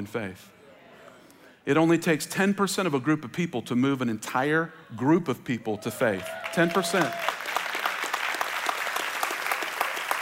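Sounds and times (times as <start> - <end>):
speech: 0.0 - 0.6, 1.6 - 7.4
congregation applause: 6.2 - 10.2.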